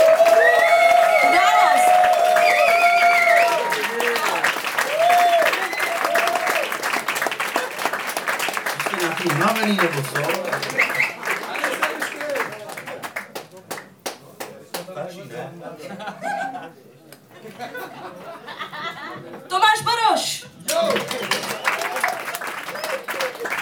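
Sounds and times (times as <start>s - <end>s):
crowd cheering and shouting: 0.0s - 6.7s
audience applause: 0.0s - 13.8s, 20.7s - 23.6s
speech: 9.6s - 10.4s
laughter: 15.5s - 19.5s.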